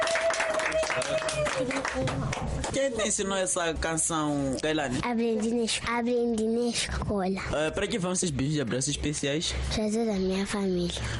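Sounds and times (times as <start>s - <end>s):
clapping for a child singer: 0.0s - 2.7s
speech: 1.0s - 11.1s.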